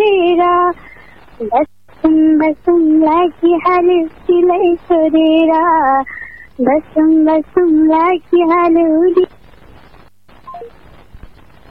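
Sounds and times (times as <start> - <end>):
low telephone line hiss: 0.0 - 11.6
speech: 0.7 - 9.4
telephone call cutting off with electronic beeps: 10.4 - 10.7.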